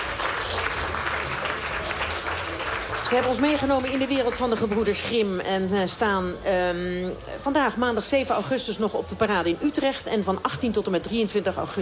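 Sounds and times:
audience applause at a theatre festival performance: 0.0s - 5.0s
speech: 3.1s - 11.8s.

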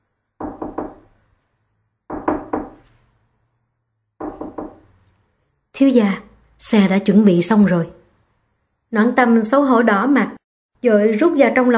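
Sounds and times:
firm knocking from outside on a room door: 0.4s - 1.1s, 2.1s - 2.8s, 4.2s - 4.9s
speech: 5.8s - 8.0s, 8.9s - 11.7s.

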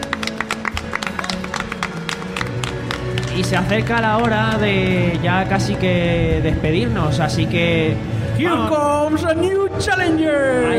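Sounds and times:
sparse applause from a few people thanking a podcast guest: 0.0s - 6.1s
speech: 3.4s - 10.7s.

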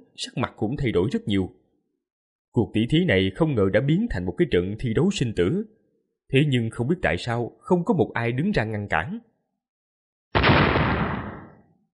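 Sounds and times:
speech: 0.2s - 1.6s, 2.6s - 9.3s
thunderous explosion with deep low rumble: 10.4s - 11.6s.

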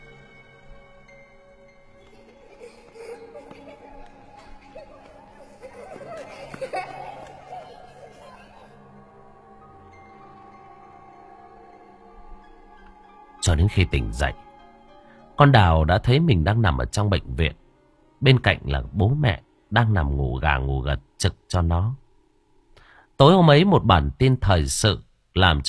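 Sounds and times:
children laughing and chattering while running past: 1.9s - 9.3s
speech: 13.5s - 14.4s, 15.4s - 17.6s, 18.2s - 22.0s, 23.2s - 25.6s.

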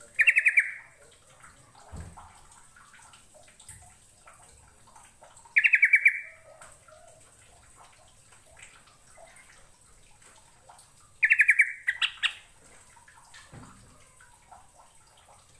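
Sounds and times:
bird chirping: 0.2s - 0.9s, 5.6s - 6.5s, 11.2s - 12.5s.

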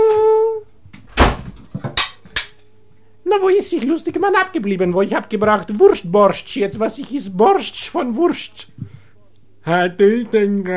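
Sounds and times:
door opening: 1.0s - 1.8s
speech: 3.5s - 8.9s, 9.6s - 10.7s.

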